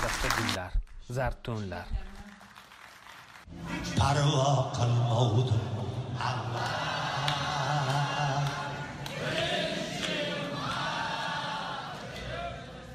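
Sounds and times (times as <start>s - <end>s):
speech: 0.0s - 2.1s, 3.5s - 6.9s
concert hall audience singing along with a singer: 5.8s - 12.9s.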